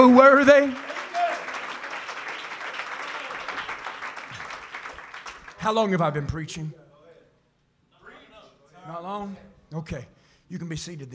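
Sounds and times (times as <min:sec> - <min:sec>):
speech: 0:00.0 - 0:00.9, 0:05.6 - 0:06.8, 0:08.8 - 0:11.1
audience at a worship service clapping hands: 0:00.0 - 0:06.0.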